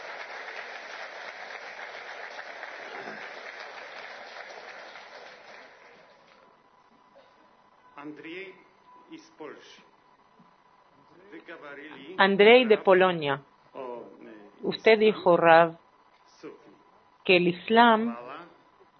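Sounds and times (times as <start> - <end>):
audience applause: 0.0 - 6.5
speech: 8.0 - 9.9, 11.3 - 13.5, 14.6 - 15.8, 17.3 - 18.3.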